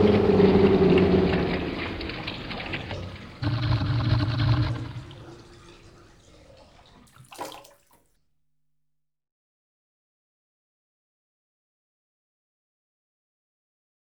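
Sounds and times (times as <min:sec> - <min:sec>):
ships colliding: 0:00.0 - 0:07.6.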